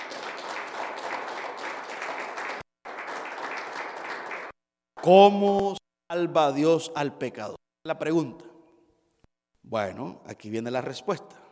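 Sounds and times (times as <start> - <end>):
audience applause: 0.0 - 4.6
speech: 5.0 - 8.5, 9.6 - 11.4.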